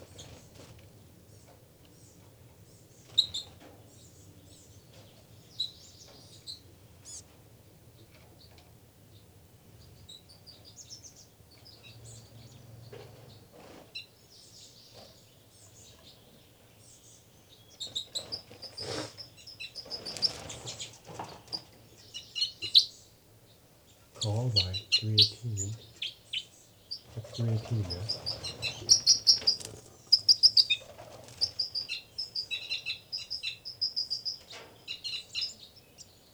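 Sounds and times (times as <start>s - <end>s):
birds fighting and calling: 4.7s - 7.3s, 17.7s - 23.1s, 23.9s - 36.2s
speech: 24.2s - 25.9s, 27.4s - 28.3s.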